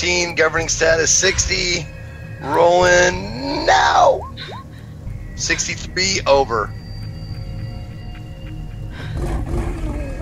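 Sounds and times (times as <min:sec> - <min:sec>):
speech: 0:00.0 - 0:04.6, 0:05.4 - 0:06.8
growling: 0:09.0 - 0:10.2.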